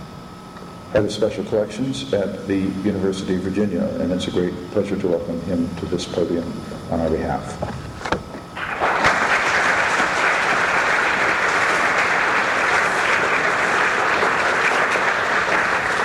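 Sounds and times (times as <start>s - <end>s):
speech: 0.9s - 7.8s
warm audience applause: 8.6s - 16.0s.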